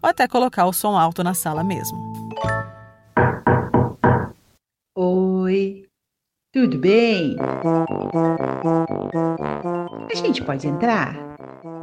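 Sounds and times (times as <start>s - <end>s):
speech: 0.0s - 2.5s, 5.0s - 5.8s, 6.6s - 11.3s
knocking on a door: 3.2s - 4.4s.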